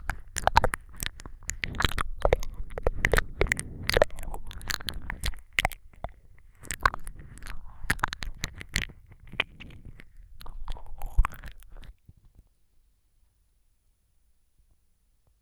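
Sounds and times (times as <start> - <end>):
ear licking with extra saliva ASMR: 0.0 - 12.0.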